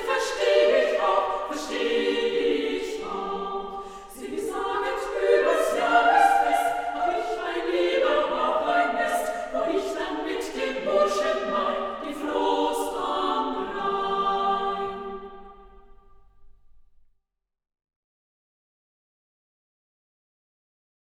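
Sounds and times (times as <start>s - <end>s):
three- to four-part women's choir singing a folk song: 0.0s - 16.1s.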